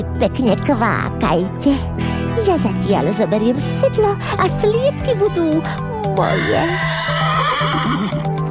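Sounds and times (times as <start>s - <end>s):
speech: 0.0s - 8.0s
horse neighing: 6.1s - 8.4s.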